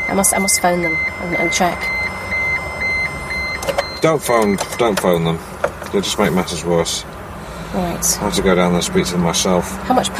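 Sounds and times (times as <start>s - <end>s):
speech: 0.1s - 2.2s, 4.0s - 7.1s, 7.7s - 10.1s
car turn indicator ticking: 0.1s - 6.0s.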